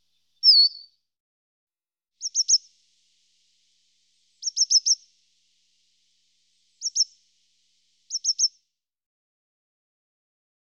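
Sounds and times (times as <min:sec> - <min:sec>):
coal tit singing: 0:00.0 - 0:00.9, 0:02.2 - 0:08.6.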